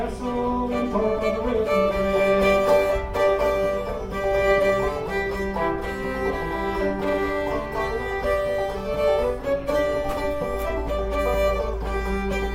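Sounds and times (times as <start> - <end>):
person singing: 0.0 - 4.3
fiddle: 0.0 - 12.5
guitar: 0.0 - 12.5.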